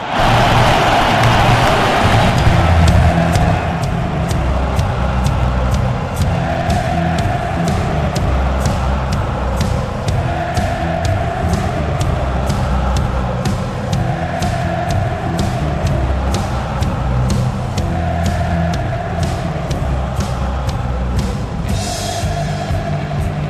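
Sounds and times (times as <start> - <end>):
stadium crowd roaring at a football match in Moscow: 0.0 - 23.4.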